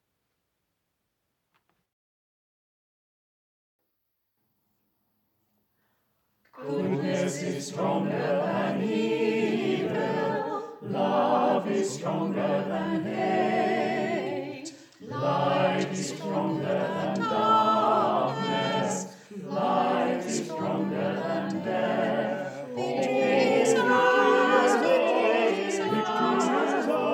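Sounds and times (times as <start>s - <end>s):
choir singing an Easter anthem: 6.6s - 27.1s.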